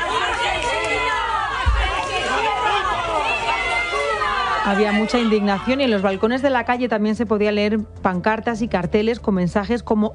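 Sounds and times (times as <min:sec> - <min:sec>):
angry crowd shouting at police van: 0:00.0 - 0:06.4
speech: 0:04.7 - 0:10.1.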